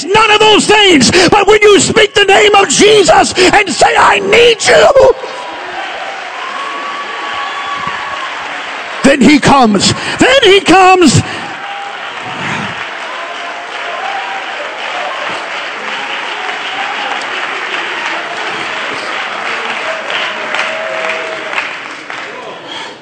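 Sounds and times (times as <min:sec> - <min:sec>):
speech: 0:00.0 - 0:05.4, 0:09.2 - 0:11.4
audience clapping: 0:05.1 - 0:23.0.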